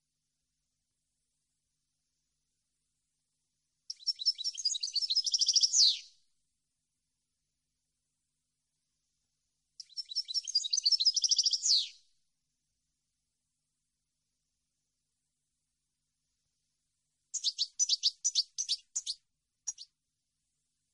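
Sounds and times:
European goldfinch song: 0:03.9 - 0:06.2, 0:09.8 - 0:12.1, 0:17.3 - 0:20.0.

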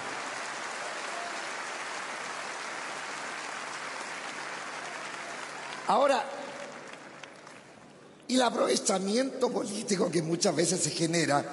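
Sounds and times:
audience applause at a Chilean comedian's stand-up show: 0:00.0 - 0:07.9
speech: 0:05.9 - 0:06.4, 0:08.3 - 0:11.5.

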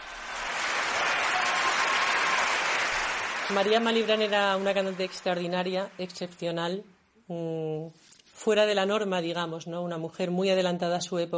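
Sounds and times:
large audience applauding wildly: 0:00.0 - 0:06.4
speech: 0:03.5 - 0:11.3.

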